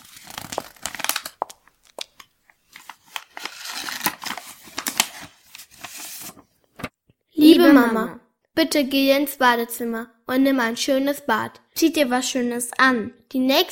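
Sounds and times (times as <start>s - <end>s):
paper letter being unfolded: 0.0s - 7.0s
speech: 7.7s - 13.7s.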